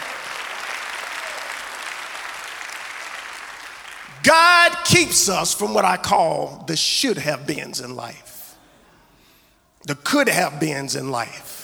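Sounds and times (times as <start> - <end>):
audience clapping hands in praise: 0.0 - 5.0
speech: 4.2 - 8.3, 9.9 - 11.5.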